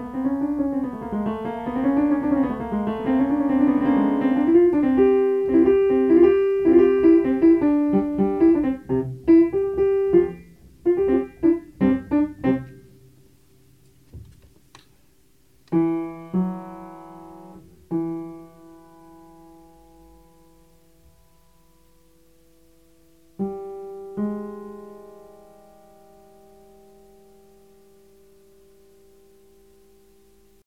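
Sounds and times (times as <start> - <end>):
acoustic piano playing: 0.0 - 13.8, 15.7 - 30.6.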